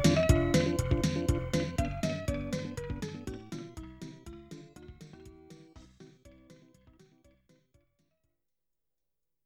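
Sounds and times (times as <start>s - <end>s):
buoyant cheerful music: 0.0s - 7.5s.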